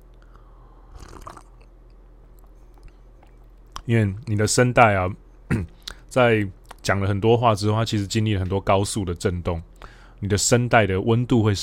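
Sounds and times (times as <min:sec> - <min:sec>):
low steady hum: 0:00.0 - 0:11.6
person sipping and swallowing water: 0:00.2 - 0:03.8
speech: 0:03.9 - 0:11.6.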